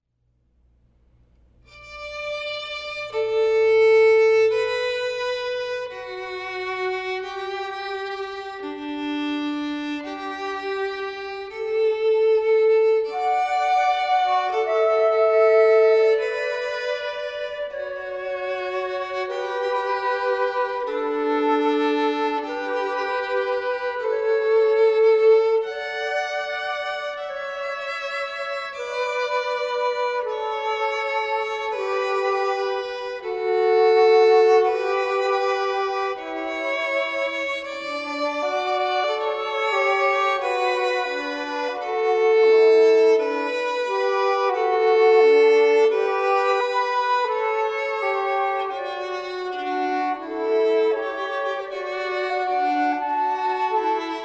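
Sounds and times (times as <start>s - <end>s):
flute canon: 1.7s - 54.2s.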